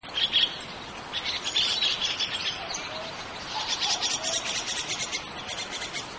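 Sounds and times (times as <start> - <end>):
chestnut-cheeked starlings chattering: 0.0 - 6.1.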